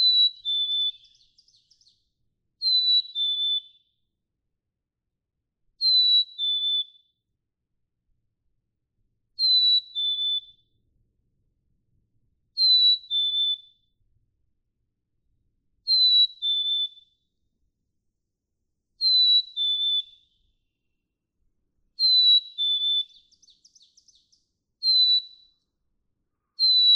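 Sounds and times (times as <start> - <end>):
black-capped chickadee whistling: 0.0 - 2.0, 2.6 - 3.8, 5.8 - 7.0, 9.4 - 10.6, 12.6 - 13.8, 15.9 - 17.1, 19.0 - 20.3, 22.0 - 25.5, 26.6 - 26.9.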